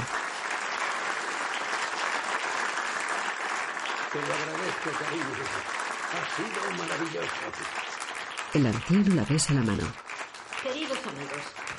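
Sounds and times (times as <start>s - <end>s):
audience applause following a cello performance: 0.0s - 11.7s
speech: 4.1s - 10.0s, 10.6s - 11.6s.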